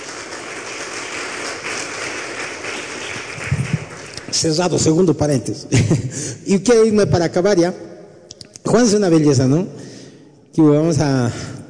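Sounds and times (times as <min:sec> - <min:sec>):
audience applause: 0:00.0 - 0:04.6
speech: 0:04.4 - 0:07.9, 0:08.7 - 0:09.8, 0:10.5 - 0:11.5.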